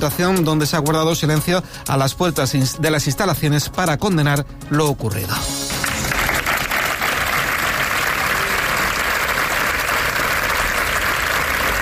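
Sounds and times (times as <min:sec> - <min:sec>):
speech: 0:00.0 - 0:05.6
applause from a crowd gathered outdoors: 0:05.7 - 0:11.8.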